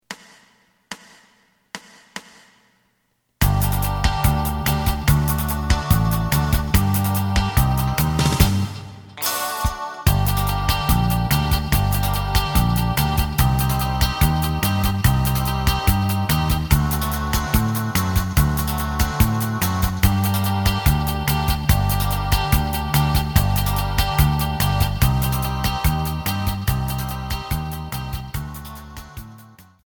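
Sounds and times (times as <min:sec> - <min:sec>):
lead melody: 0:03.4 - 0:29.6.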